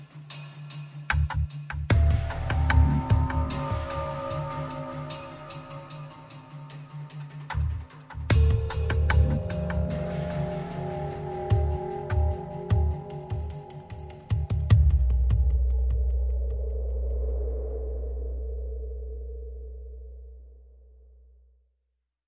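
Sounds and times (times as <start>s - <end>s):
pads and pulses: 1.9s - 7.1s, 8.3s - 20.5s.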